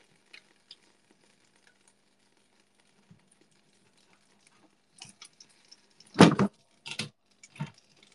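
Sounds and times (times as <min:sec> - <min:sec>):
sauce sizzling in a hot pan: 0:00.0 - 0:08.1.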